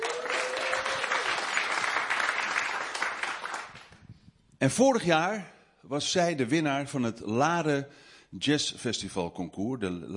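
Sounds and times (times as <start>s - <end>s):
crowd applause: 0.0s - 4.0s
speech: 4.6s - 10.1s.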